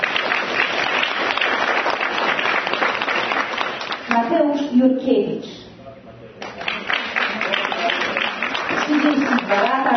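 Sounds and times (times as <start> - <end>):
audience applause: 0.0 - 4.1, 6.5 - 9.9
speech: 4.7 - 5.6.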